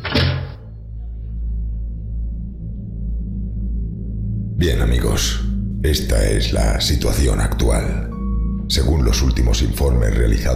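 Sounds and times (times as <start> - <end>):
door shutting with a solid thud: 0.0 - 0.7
steady low rumble: 0.5 - 10.5
speech: 4.6 - 8.1, 8.7 - 10.5.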